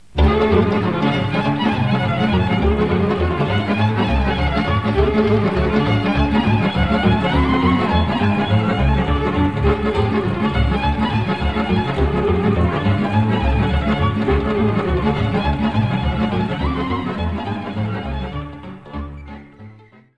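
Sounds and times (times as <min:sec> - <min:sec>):
Romanian sirba folk dance music: 0:00.0 - 0:20.1.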